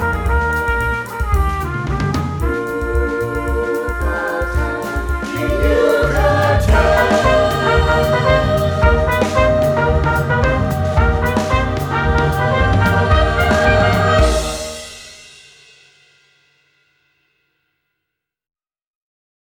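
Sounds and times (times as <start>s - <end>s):
samba music: 0.0s - 15.4s.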